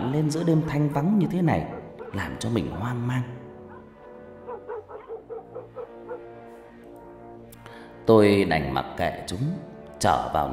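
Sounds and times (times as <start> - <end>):
speech: 0.2 - 3.4, 8.0 - 10.5
dogs barking at night: 0.5 - 6.9.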